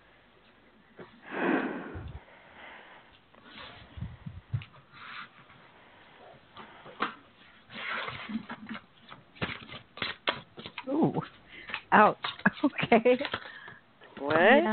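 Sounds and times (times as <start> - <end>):
shuffling cards: 7.7 - 13.6
speech: 11.9 - 13.5, 14.3 - 14.7.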